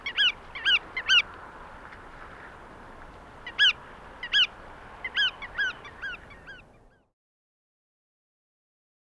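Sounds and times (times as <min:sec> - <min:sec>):
Bar-tailed Godwit calling: 0:00.0 - 0:01.3, 0:03.4 - 0:07.0.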